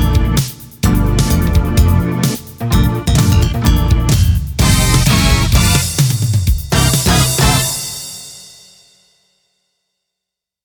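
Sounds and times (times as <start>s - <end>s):
Roland SC-88: 0.0s - 7.8s.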